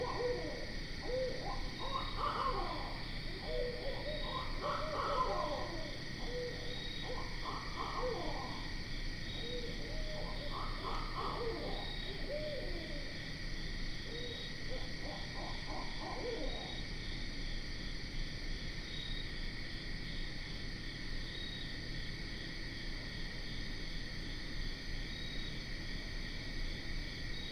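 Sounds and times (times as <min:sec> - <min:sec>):
barred owl hooting: 0:00.0 - 0:13.3, 0:14.0 - 0:16.8
insect chorus drone: 0:00.0 - 0:27.5.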